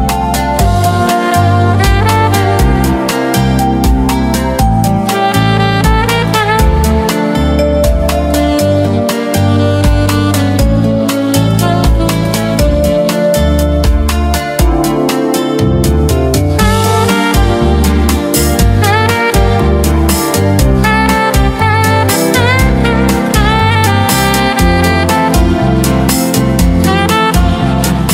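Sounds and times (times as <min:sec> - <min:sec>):
saxophone: 0:00.0 - 0:28.1.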